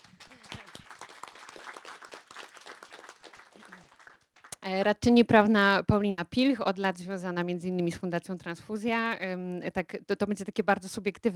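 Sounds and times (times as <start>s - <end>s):
audience applause: 0.0s - 4.6s
speech: 4.6s - 11.3s.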